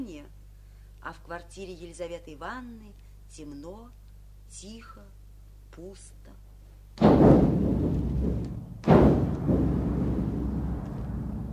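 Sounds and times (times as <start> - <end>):
speech: 1.0 - 6.4
artillery shelling: 7.0 - 11.5.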